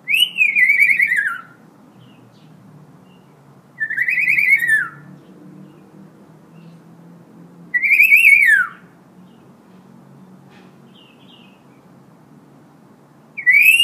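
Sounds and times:
Hill myna in full active song: 0.1 - 1.5, 3.8 - 5.0, 7.8 - 8.8, 13.4 - 13.8.

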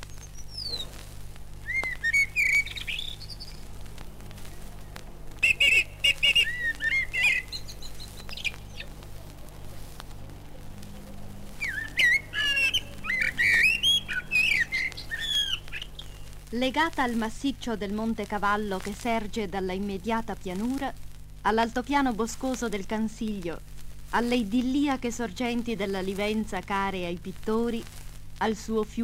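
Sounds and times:
song thrush singing: 0.0 - 0.9, 1.6 - 3.7, 4.5 - 9.0, 11.5 - 16.3
speech: 16.6 - 29.0.

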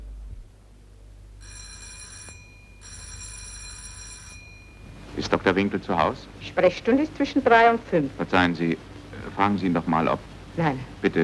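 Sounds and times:
doorbell ringing: 1.4 - 5.0
speech: 5.2 - 11.2.

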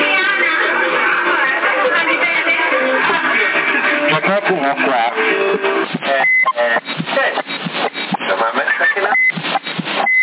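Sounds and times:
tinny band-limited voices talking in Italian over CB radio channel 10 in Sassari: 0.0 - 5.2, 6.0 - 10.2
short steady high CB radio roger beep: 6.0 - 8.2, 9.1 - 10.2.

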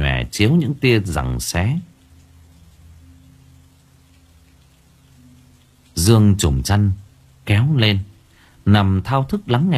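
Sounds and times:
heavy rain falling: 0.0 - 9.7
speech: 0.4 - 1.9, 6.0 - 9.7.

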